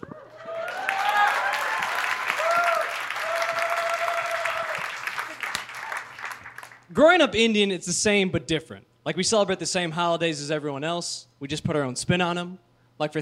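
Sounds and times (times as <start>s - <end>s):
crowd applauding: 0.0s - 6.9s
speech: 7.0s - 13.2s.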